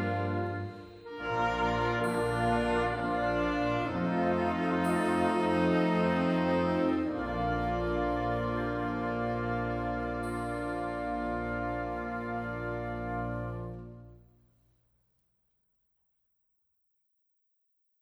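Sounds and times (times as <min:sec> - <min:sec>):
alto saxophone: 0:00.0 - 0:14.2.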